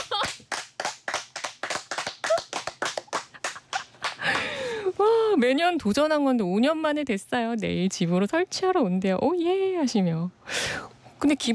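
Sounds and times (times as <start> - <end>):
clapping: 0.0 - 4.5
speech: 5.4 - 11.5.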